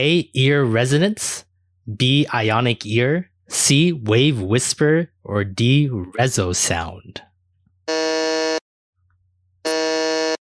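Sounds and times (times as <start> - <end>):
speech: 0.0 - 7.3
game show buzzer: 7.9 - 8.6, 9.6 - 10.4.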